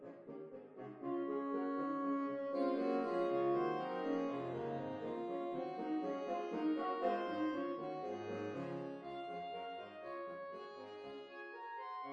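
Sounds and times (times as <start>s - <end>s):
saxophone ensemble: 0.8s - 10.1s.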